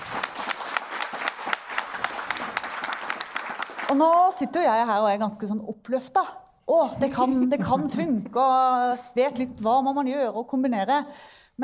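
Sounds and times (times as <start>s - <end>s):
audience applause: 0.0s - 4.2s
speech: 3.9s - 11.6s.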